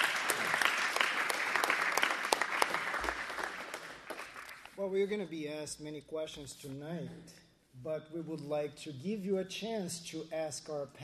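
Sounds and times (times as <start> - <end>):
audience applause: 0.0 - 4.7
speech: 4.8 - 11.0.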